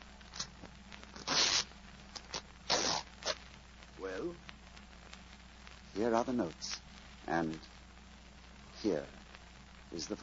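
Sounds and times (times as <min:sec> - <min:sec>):
fabric ripping as jacket breast pocket lining is cut open: 0:01.1 - 0:03.4
speech: 0:06.0 - 0:06.7, 0:07.3 - 0:07.7, 0:08.8 - 0:09.3, 0:09.9 - 0:10.2.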